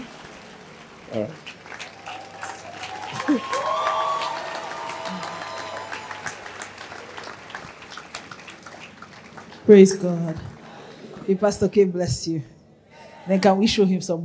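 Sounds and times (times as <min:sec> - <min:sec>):
audience applause and cheering: 0:00.0 - 0:09.7
speech: 0:01.1 - 0:01.6, 0:03.2 - 0:03.8, 0:09.7 - 0:10.5, 0:11.3 - 0:12.5, 0:13.3 - 0:14.2.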